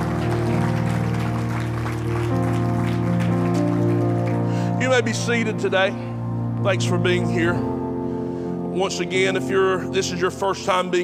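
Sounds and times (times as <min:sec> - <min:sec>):
crowd clapping: 0:00.0 - 0:05.5
sustained chord-like musical tones: 0:00.0 - 0:11.0
speech: 0:04.9 - 0:07.7, 0:08.8 - 0:11.0.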